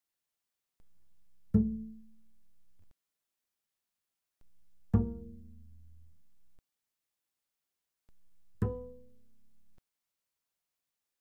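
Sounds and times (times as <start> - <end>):
double bass pizzicato fortissimo on the D string: 1.5 - 2.3, 4.8 - 6.3, 8.5 - 9.8.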